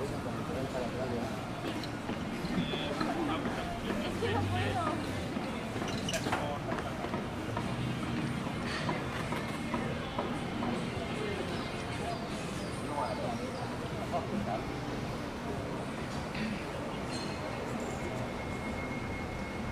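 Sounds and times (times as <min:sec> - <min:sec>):
constant low rumble of traffic: 0:00.0 - 0:19.7
murmur of many voices on a busy street: 0:00.0 - 0:19.7.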